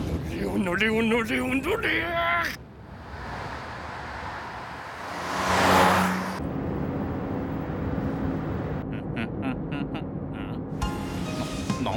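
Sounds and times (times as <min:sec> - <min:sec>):
speech: 0:00.5 - 0:02.6
car engine humming while driving: 0:02.7 - 0:11.2.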